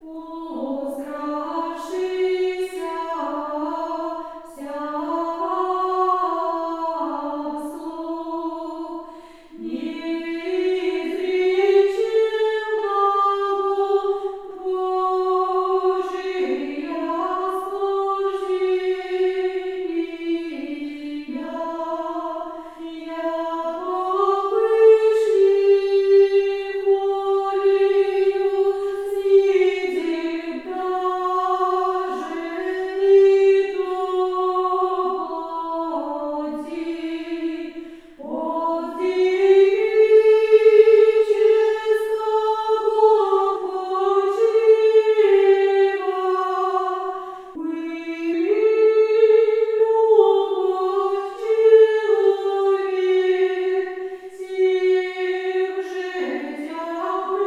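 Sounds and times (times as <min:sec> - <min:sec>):
liturgical chant: 0:00.0 - 0:57.4.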